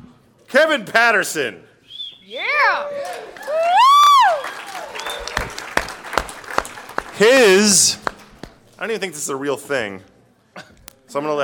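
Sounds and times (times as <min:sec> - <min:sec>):
speech: 0:00.5 - 0:01.7, 0:02.3 - 0:04.5, 0:07.2 - 0:08.0, 0:08.8 - 0:11.4
audience applause: 0:02.9 - 0:08.6.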